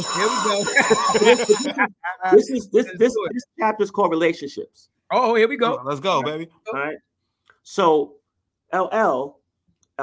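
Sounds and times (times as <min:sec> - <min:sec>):
bell ringing: 0:00.0 - 0:01.8
laughter: 0:00.0 - 0:03.5
speech: 0:00.1 - 0:09.4.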